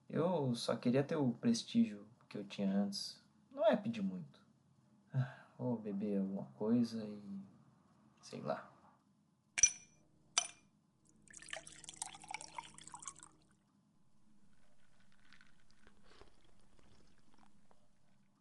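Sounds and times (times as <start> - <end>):
speech: 0.1 - 4.4, 5.1 - 7.5, 8.2 - 8.7
glass clinks: 9.6 - 10.7
whisky poured into a glass: 11.2 - 13.5, 14.3 - 18.3.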